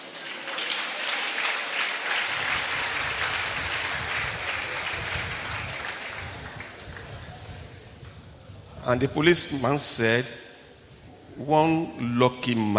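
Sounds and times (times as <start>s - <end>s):
audience clapping: 0.0s - 7.8s
speech: 8.9s - 10.4s, 11.4s - 12.7s.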